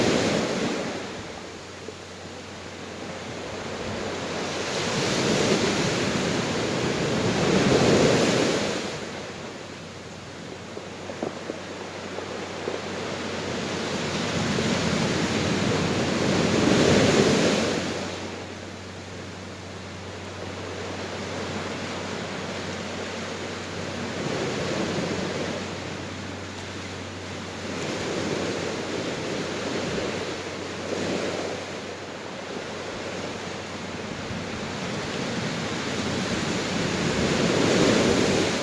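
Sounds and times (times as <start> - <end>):
ocean waves: 0.0 - 38.6.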